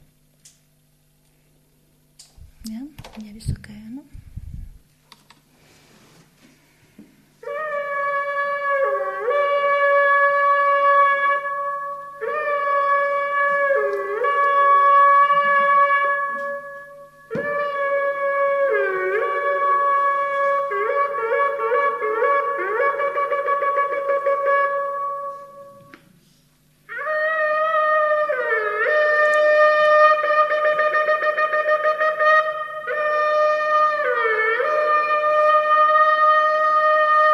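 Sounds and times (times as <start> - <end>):
speech: 3.2 - 4.2
shofar ram's horn being blown: 7.4 - 26.1, 26.9 - 37.3.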